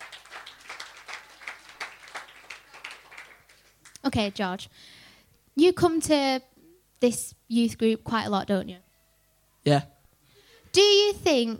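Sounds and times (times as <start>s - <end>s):
small group clapping: 0.0s - 4.6s
speech: 4.0s - 5.0s, 5.6s - 8.9s, 9.6s - 9.9s, 10.8s - 11.5s.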